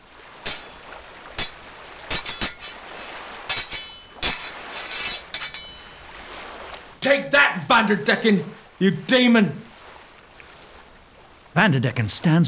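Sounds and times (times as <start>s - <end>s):
swords clashing in a staged duel in an audio drama: 0.4s - 6.1s
speech: 7.0s - 9.7s, 11.6s - 12.4s.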